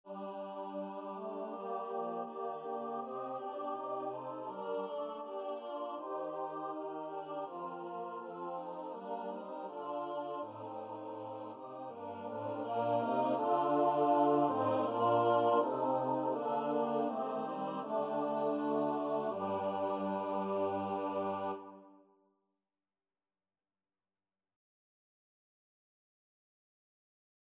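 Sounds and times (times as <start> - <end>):
MIDI psalm tune: 0.1 - 21.9.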